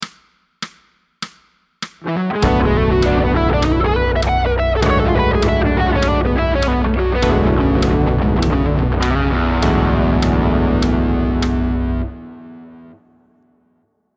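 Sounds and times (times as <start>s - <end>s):
musical lick: 2.0s - 12.9s.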